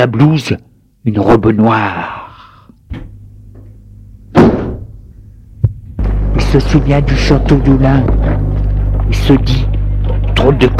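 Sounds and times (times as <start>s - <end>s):
speech: 0.0s - 2.2s, 6.5s - 9.8s, 10.4s - 10.7s
low steady hum: 0.0s - 10.7s
door closing with thud: 2.9s - 3.1s, 4.3s - 4.9s.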